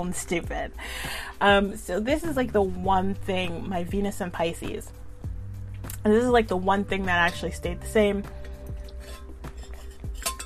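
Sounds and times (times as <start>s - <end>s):
speech: 0.0s - 5.0s, 6.0s - 8.4s
glass clinking: 9.0s - 10.4s.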